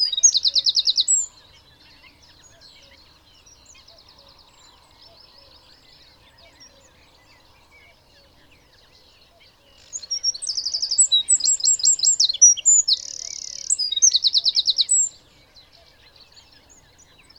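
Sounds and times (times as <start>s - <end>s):
Eurasian wren trilling: 0.0s - 1.3s, 2.3s - 15.2s.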